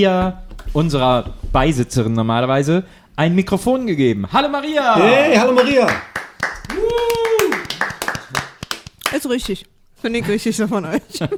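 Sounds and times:
speech: 0.0 - 7.2, 9.1 - 11.3
hand claps in a studio chat: 5.0 - 9.4.

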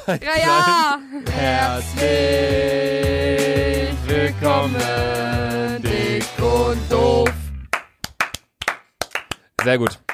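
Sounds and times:
speech: 0.0 - 7.3, 9.6 - 10.1
two people clapping hands: 7.2 - 10.1.

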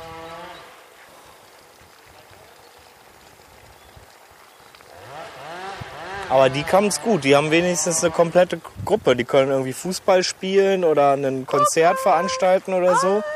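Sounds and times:
chainsaw running: 0.0 - 0.8, 4.8 - 8.5
speech: 6.3 - 13.3.

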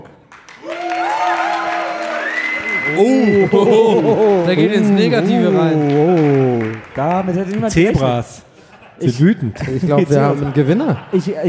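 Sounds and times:
audience applause: 0.0 - 8.2
whoops and cheering voices: 0.6 - 6.8
speech: 2.9 - 6.4, 7.0 - 11.4
laughter: 3.0 - 6.8, 7.6 - 11.4.

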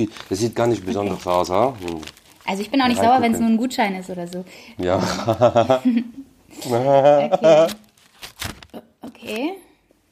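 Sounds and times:
small paper envelope tearing and crinkling as it is opened: 0.0 - 4.4, 7.4 - 9.5
speech: 0.0 - 7.8, 9.3 - 9.6
laughter: 4.9 - 7.8.

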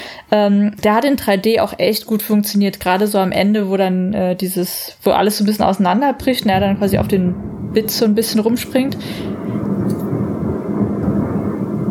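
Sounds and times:
speech: 0.3 - 9.4
fireworks exploding outside: 6.4 - 11.8.

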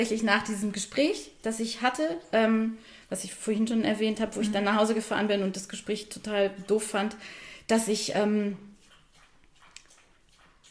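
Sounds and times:
speech: 0.0 - 8.7
dog lapping up drinking water: 8.7 - 10.6.

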